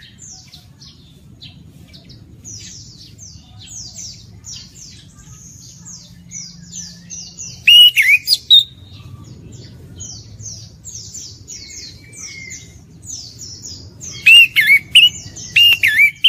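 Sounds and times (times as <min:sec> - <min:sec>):
orange-headed thrush wavering whistles and harsh rattling note: 0:07.6 - 0:08.8, 0:14.1 - 0:16.2.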